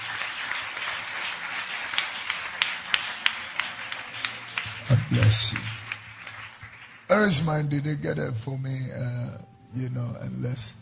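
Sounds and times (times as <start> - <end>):
audience clapping: 0.0 - 8.2
speech: 5.1 - 5.7, 7.1 - 10.7.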